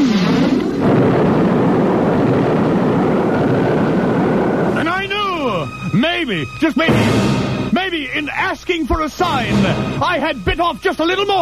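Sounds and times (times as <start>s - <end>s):
lightning strike thunder crash: 0.0s - 7.9s
speech: 6.3s - 11.4s.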